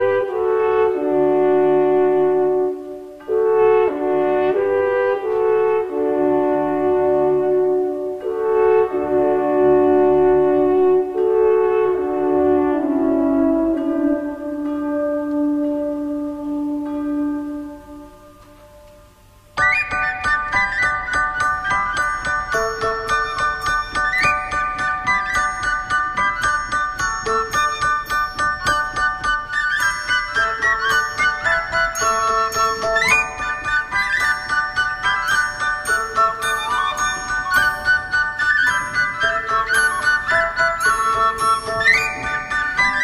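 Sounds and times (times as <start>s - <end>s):
folk instrument orchestra: 0.0s - 43.0s.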